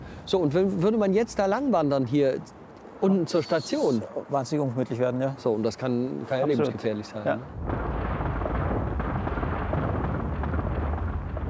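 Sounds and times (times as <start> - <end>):
speech: 0.3 - 7.8
rockfall rumbling: 7.6 - 11.4.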